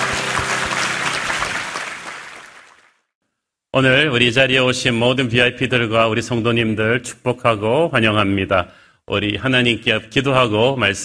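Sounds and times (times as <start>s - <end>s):
audience applause: 0.0s - 3.0s
speech: 3.7s - 11.0s.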